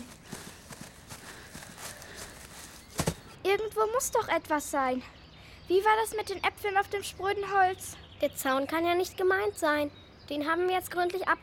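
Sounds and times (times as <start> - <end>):
footsteps on the ground along a paddock fence: 0.0 - 3.3
speech: 3.6 - 11.4.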